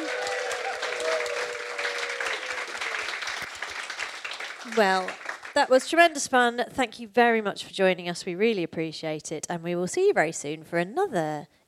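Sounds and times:
faint whoop or cheer: 0.0 - 3.2
audience applause: 0.0 - 5.7
speech: 4.7 - 11.6.

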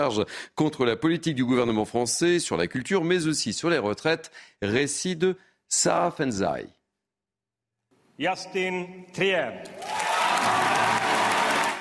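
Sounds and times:
speech: 0.0 - 6.8, 8.2 - 10.8
audience applause at awards ceremony: 9.8 - 11.7.

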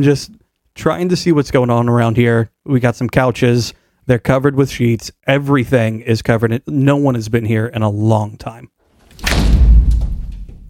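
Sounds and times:
speech: 0.0 - 9.5
heavy door slamming shut: 9.0 - 10.6.

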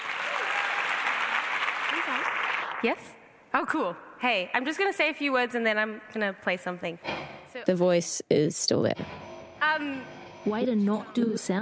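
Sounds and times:
audience clapping at a writers' festival to welcome a performer: 0.0 - 2.9
speech: 2.0 - 9.2, 9.8 - 11.5.

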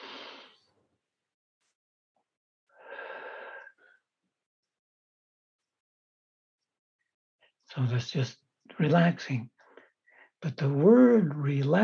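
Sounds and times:
deep breaths: 0.0 - 0.6, 2.7 - 4.0, 9.6 - 10.4
speech: 7.7 - 9.6, 10.4 - 11.8.

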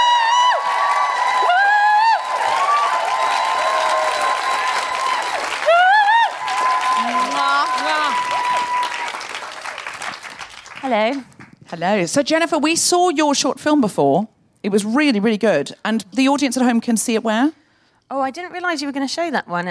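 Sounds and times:
high whoops: 0.0 - 9.5
live audience applause welcoming a guest director and writer on stage: 0.0 - 11.6
speech: 10.9 - 19.7.

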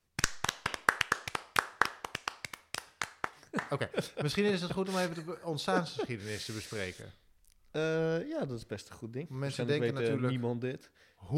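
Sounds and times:
hands clapping: 0.0 - 4.4
laughter: 3.5 - 6.6
speech: 3.7 - 11.3.

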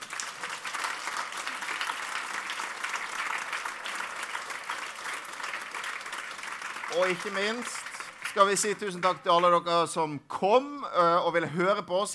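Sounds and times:
audience applause: 0.0 - 9.2
speech: 7.0 - 12.1.

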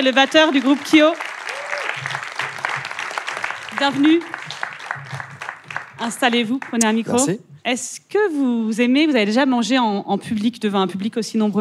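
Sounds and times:
speech: 0.0 - 1.3, 3.8 - 4.3, 6.0 - 11.5
audience applause: 0.0 - 7.1.

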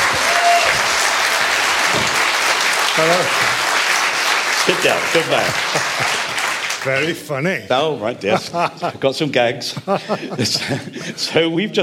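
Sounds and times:
audience applause at a live festival event: 0.0 - 7.2
speech: 3.0 - 3.5, 4.7 - 6.2, 6.8 - 11.8
laughter: 4.6 - 7.1, 8.0 - 11.7.

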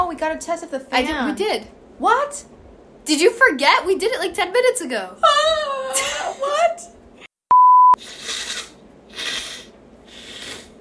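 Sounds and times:
speech: 0.1 - 7.0
person blowing nose: 8.0 - 10.7.

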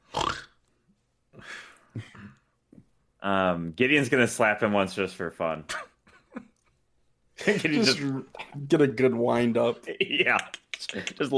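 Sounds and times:
voice imitating loud snoring: 0.0 - 0.6
speech: 2.0 - 2.2, 3.2 - 5.9, 7.4 - 11.3.

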